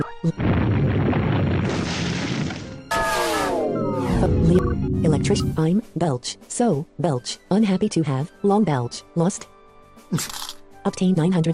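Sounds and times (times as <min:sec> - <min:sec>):
speech: 0:00.0 - 0:00.8, 0:04.5 - 0:09.5, 0:10.1 - 0:11.5
earthquake attack sound effect in game: 0:00.4 - 0:05.6.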